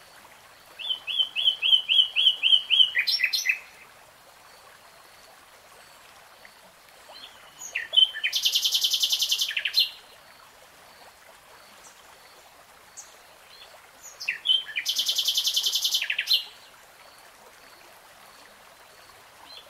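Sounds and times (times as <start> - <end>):
nightingale song: 0.8 - 3.8, 7.1 - 10.0, 13.0 - 16.7.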